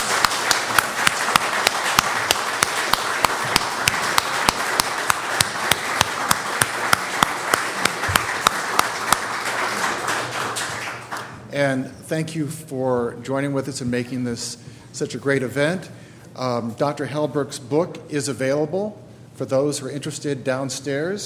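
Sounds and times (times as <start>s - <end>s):
audience applause: 0.0s - 11.3s
speech: 11.7s - 21.2s.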